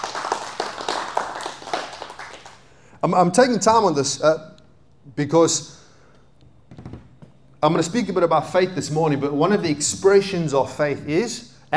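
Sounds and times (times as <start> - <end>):
audience hand clapping: 0.0 - 2.8
speech: 3.0 - 5.8, 7.6 - 11.7.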